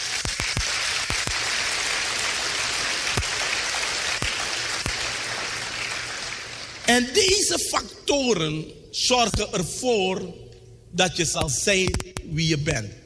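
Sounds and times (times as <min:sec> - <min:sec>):
audience applause: 0:00.0 - 0:07.1
speech: 0:06.9 - 0:13.0.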